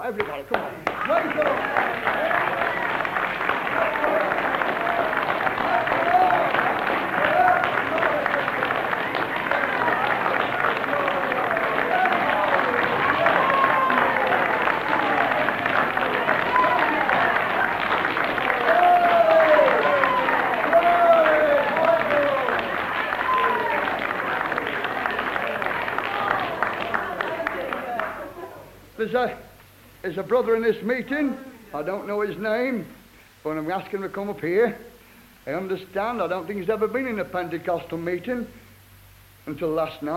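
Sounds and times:
speech: 0.0 - 2.6, 30.1 - 38.6, 39.4 - 40.1
audience clapping: 0.0 - 29.7.

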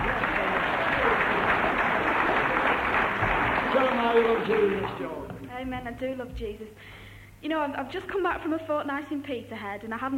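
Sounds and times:
audience applause: 0.0 - 5.4
speech: 4.6 - 10.1.

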